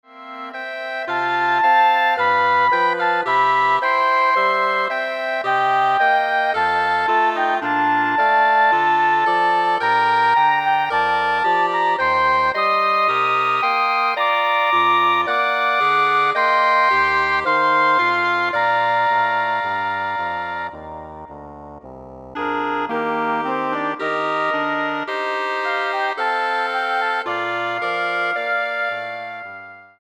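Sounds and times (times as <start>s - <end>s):
woodwind ensemble: 0.1s - 29.9s.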